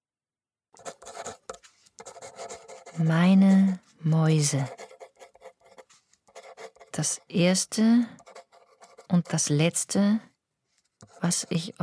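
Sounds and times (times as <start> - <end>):
pen tip gliding over paper: 0.8 - 7.5, 8.1 - 9.5, 11.0 - 11.8
speech: 3.0 - 4.8, 7.0 - 8.2, 9.1 - 10.3, 11.2 - 11.8.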